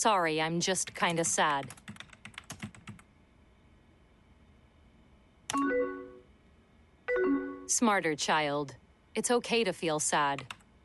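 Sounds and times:
speech: 0.0s - 1.9s, 7.8s - 10.8s
hasty typing on a computer keyboard: 0.8s - 3.1s, 10.4s - 10.6s.

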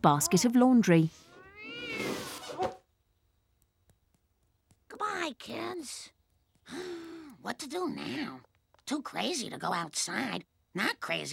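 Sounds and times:
speech: 0.0s - 1.3s, 5.3s - 11.3s
cat meowing: 1.2s - 2.7s.

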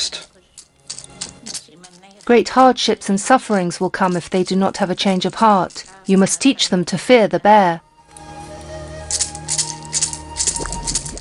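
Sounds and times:
maracas being shaken: 0.3s - 6.5s, 8.5s - 11.1s
speech: 2.3s - 7.8s.

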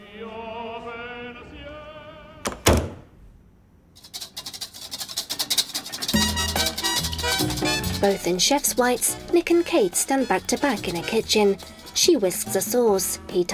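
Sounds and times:
door pushed shut with a solid thud: 2.4s - 3.1s
busy clattering and rustling: 4.0s - 13.1s
speech: 8.0s - 13.5s.

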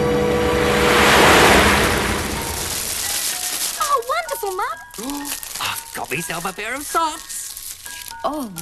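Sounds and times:
stream water swirling over a weir: 0.2s - 3.8s
speech: 6.4s - 7.4s, 8.2s - 8.5s.

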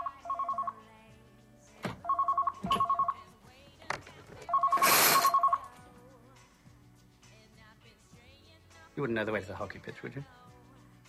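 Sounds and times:
telephone ringing: 0.0s - 0.9s, 2.0s - 3.3s, 4.4s - 5.8s
speech: 9.0s - 10.4s.

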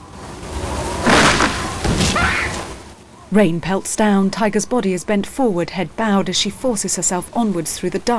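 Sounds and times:
uprooted tree crashing to the ground: 0.9s - 3.0s
speech: 3.3s - 8.1s.

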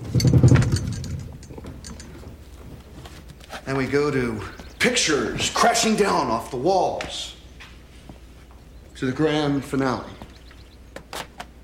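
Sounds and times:
table rattling: 0.0s - 3.4s
speech: 3.7s - 7.4s, 9.0s - 10.2s.

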